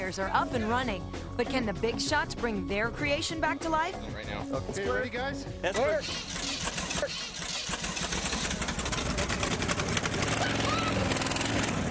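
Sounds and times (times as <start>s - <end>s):
speech: 0.1s - 6.4s
rebuilt machine engine running with a bad misfire at a competition: 6.0s - 11.8s.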